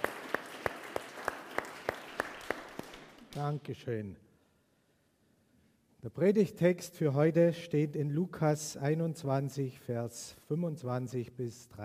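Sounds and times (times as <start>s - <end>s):
audience clapping in a slow steady rhythm: 0.0s - 3.6s
speech: 3.4s - 4.3s, 6.0s - 11.8s.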